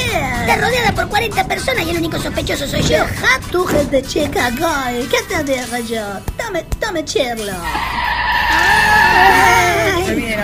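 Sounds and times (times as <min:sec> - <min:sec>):
speech: 0:00.5 - 0:10.4
car tire squeal from hard braking into a skid: 0:07.6 - 0:10.2
rough car engine roar: 0:07.6 - 0:10.4.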